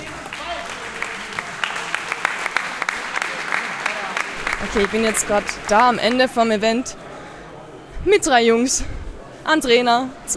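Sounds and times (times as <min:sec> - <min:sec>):
crowd applauding: 0:00.0 - 0:06.6
faint murmur of voices: 0:00.0 - 0:10.3
speech: 0:04.6 - 0:07.0, 0:08.0 - 0:10.3.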